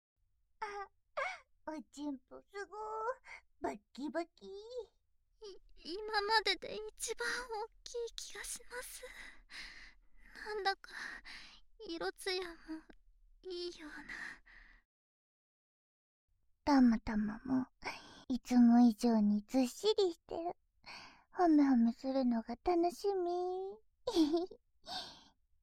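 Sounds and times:
voice only: 0.6 - 9.2, 10.4 - 11.2, 11.8 - 12.9, 13.5 - 14.4, 16.7 - 20.5, 21.4 - 24.5.

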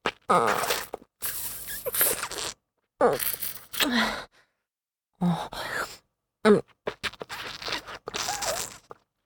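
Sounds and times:
wet sucking sounds: 0.0 - 4.0, 6.9 - 8.9.

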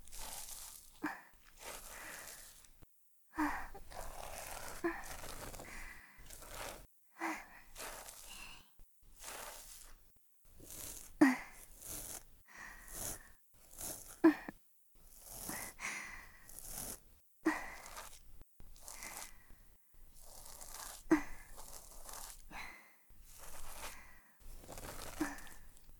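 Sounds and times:
ear cleaning sound effects: 0.0 - 2.8, 3.4 - 25.9
breathing: 1.0 - 2.7, 3.4 - 8.8, 12.4 - 14.4, 15.2 - 18.2, 18.8 - 19.8, 22.5 - 25.8.

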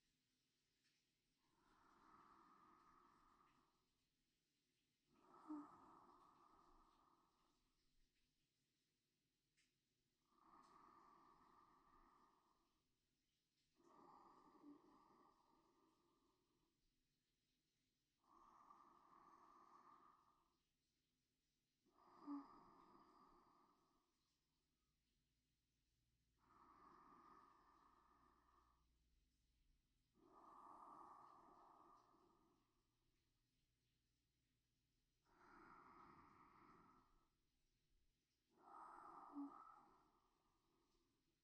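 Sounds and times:
sleep breathing: 0.8 - 4.1, 5.0 - 8.3, 9.6 - 13.0, 13.6 - 16.8, 18.1 - 21.0, 21.8 - 24.8, 26.3 - 33.5, 35.1 - 41.4.

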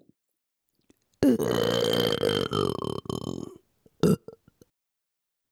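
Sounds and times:
person burping for ASMR: 1.2 - 4.4.

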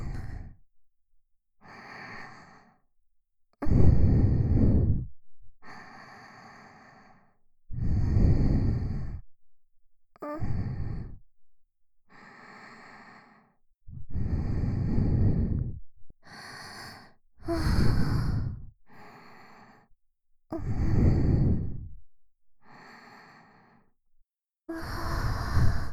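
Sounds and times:
sweet breathing loop: 1.6 - 2.9, 3.7 - 9.3, 10.3 - 11.2, 12.1 - 20.0, 20.6 - 22.1, 22.6 - 24.0, 24.7 - 25.9.

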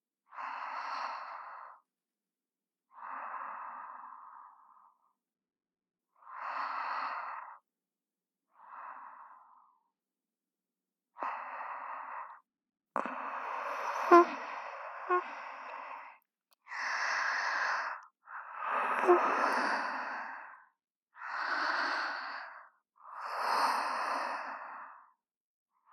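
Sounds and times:
princess sleeping breath ASMR: 0.3 - 1.8, 2.9 - 5.1, 6.2 - 7.6, 8.5 - 9.8, 11.2 - 12.4, 13.0 - 25.2.

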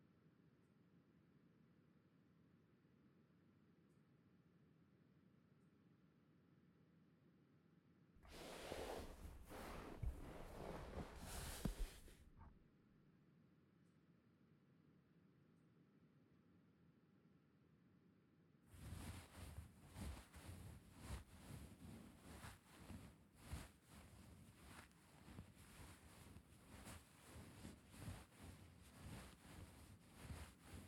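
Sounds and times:
relaxing ASMR massage sounds: 8.2 - 12.3, 18.8 - 30.8.

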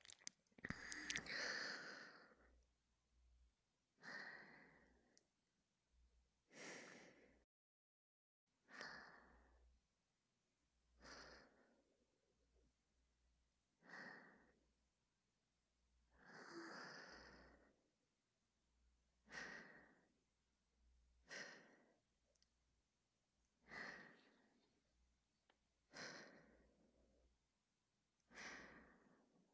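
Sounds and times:
breathing: 0.0 - 2.4, 4.0 - 5.2, 6.5 - 7.4, 11.0 - 11.8, 13.8 - 14.6, 16.2 - 17.8, 19.2 - 20.2, 21.2 - 22.0, 23.6 - 24.7, 25.9 - 26.9, 28.3 - 29.4.

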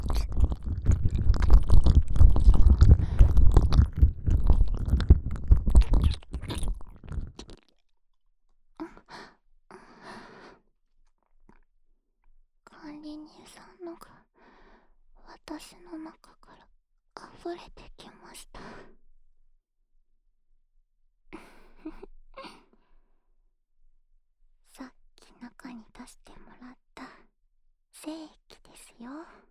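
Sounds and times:
ear licking in the left ear: 0.0 - 7.7.

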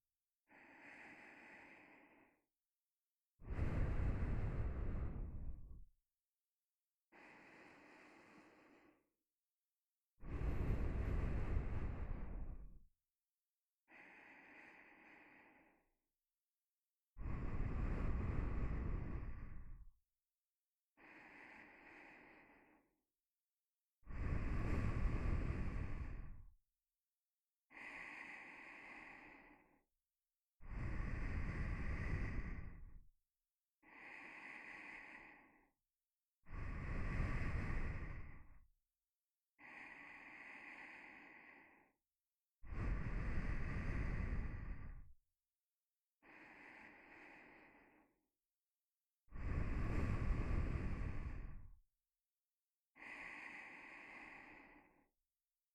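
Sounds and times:
nose breathing while lying beside: 0.5 - 2.4, 3.4 - 5.8, 7.1 - 9.1, 10.2 - 12.7, 13.9 - 15.9, 17.2 - 19.8, 21.0 - 22.9, 24.1 - 26.5, 27.7 - 29.8, 30.6 - 33.0, 33.8 - 35.7, 36.5 - 38.6, 39.6 - 42.0, 42.6 - 45.1, 46.2 - 48.2, 49.3 - 51.8, 52.9 - 55.1.

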